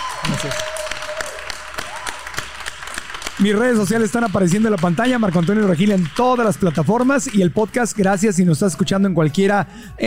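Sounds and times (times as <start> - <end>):
applause: 0.0 - 8.0
speech: 0.4 - 0.7, 3.4 - 10.0.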